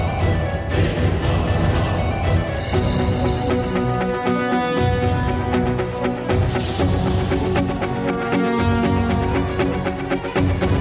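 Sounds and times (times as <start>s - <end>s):
main menu background music: 0.0s - 10.7s.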